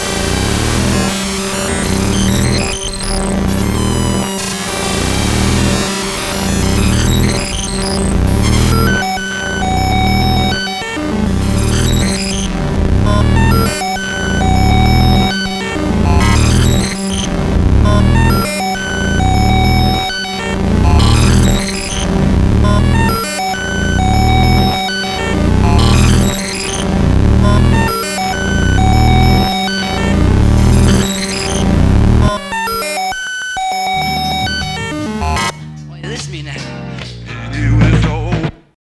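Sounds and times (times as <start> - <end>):
1-bit groove music: 0.0 - 38.7.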